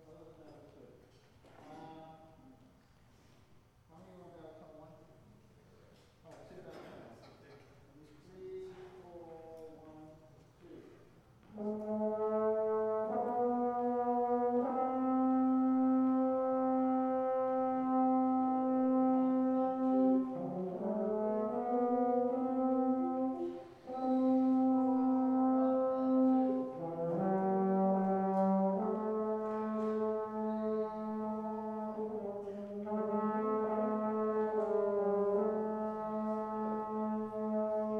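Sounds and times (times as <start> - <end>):
brass instruments: 11.4 - 37.9.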